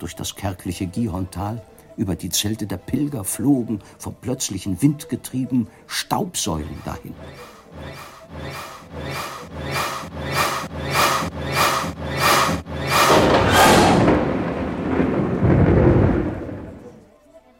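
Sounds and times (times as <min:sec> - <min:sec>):
speech: 0:00.0 - 0:09.3
rhythmic rasping pulses: 0:06.7 - 0:14.1
deep rolling thunder in a thunderstorm: 0:12.9 - 0:17.1.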